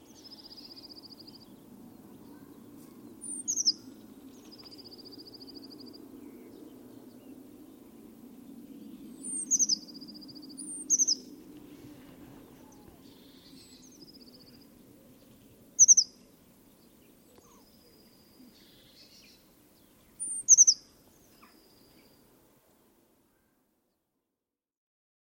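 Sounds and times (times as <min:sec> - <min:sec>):
bird chirping: 0:00.0 - 0:11.4, 0:12.4 - 0:22.3.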